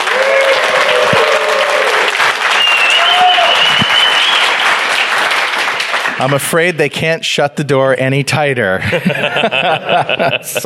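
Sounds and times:
audience applause: 0:00.0 - 0:06.8
faint whistles: 0:02.5 - 0:04.6
speech: 0:06.2 - 0:10.6
laughter: 0:08.8 - 0:10.6.

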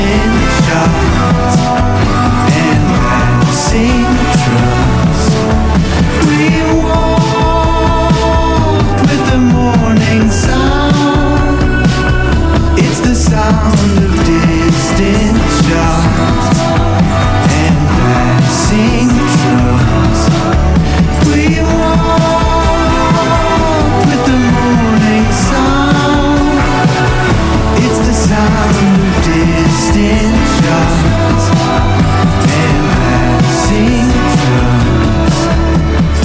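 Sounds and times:
song with layered guitars, bass and drums: 0:00.0 - 0:36.2.

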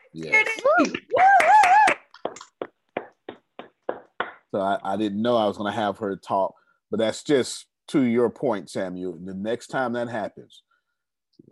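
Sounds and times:
speech: 0:00.2 - 0:01.4, 0:04.6 - 0:10.7
meeting participants clapping over microphones: 0:00.2 - 0:04.5.

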